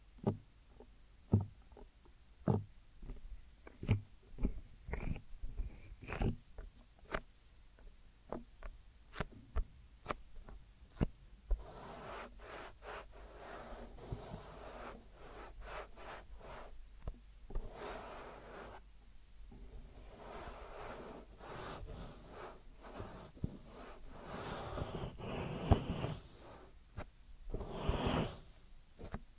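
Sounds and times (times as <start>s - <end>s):
deep ear massage taps and clicks: 0.2s - 11.6s
deep ear massage rubbing and brushing: 3.0s - 7.3s, 9.1s - 29.3s.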